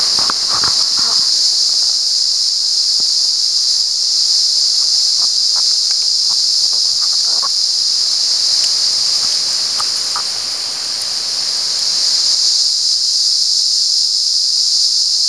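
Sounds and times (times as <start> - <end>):
cicada buzzing at San Ramon: 0.0 - 15.2.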